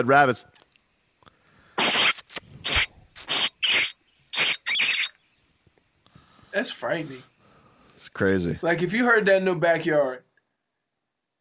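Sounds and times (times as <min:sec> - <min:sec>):
speech: 0:00.0 - 0:00.6, 0:06.6 - 0:07.3, 0:08.1 - 0:10.2
rabbit squealing: 0:01.8 - 0:05.2.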